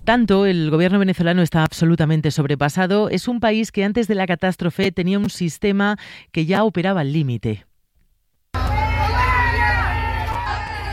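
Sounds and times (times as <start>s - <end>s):
speech: 0.1s - 7.7s
large crowd booing and jeering: 8.5s - 10.9s.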